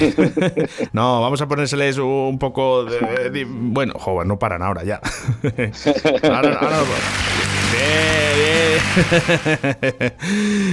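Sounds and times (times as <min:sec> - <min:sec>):
laughter: 0:00.0 - 0:00.9, 0:05.1 - 0:10.2
speech: 0:00.0 - 0:10.7
applause sound effect: 0:06.6 - 0:09.7.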